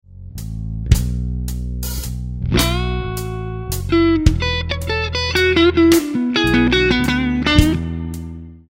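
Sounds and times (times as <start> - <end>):
guitar lick: 2.4 - 8.6.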